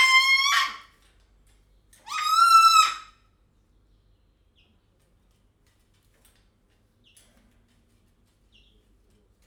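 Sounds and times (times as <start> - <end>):
white-crested cockatoo calling at Jaszberenyi zoo: 0.0 - 0.9, 2.1 - 3.1.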